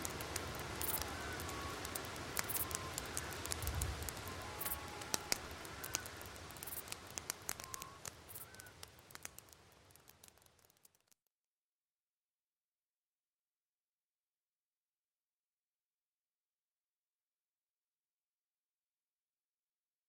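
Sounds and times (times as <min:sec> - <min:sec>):
wind at night: 0:00.0 - 0:11.1
fire at night: 0:00.0 - 0:11.2.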